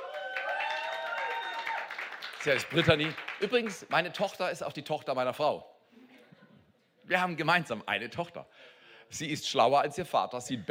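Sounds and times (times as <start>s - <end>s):
audience applause: 0.0s - 3.9s
speech: 2.4s - 5.7s, 7.1s - 10.6s.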